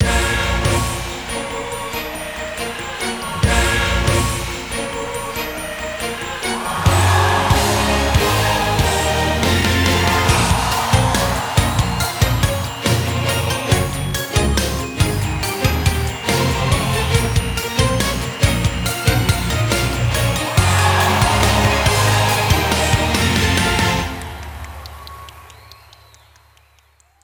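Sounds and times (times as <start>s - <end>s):
grand victory music: 0.0s - 25.6s.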